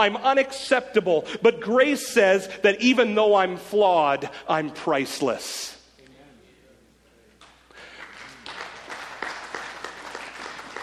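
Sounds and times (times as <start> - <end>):
speech: 0.0 - 5.8
audience applause: 7.8 - 10.8.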